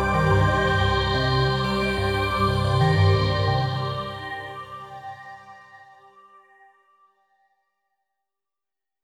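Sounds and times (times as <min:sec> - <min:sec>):
hybrid tech theme music: 0:00.0 - 0:05.0.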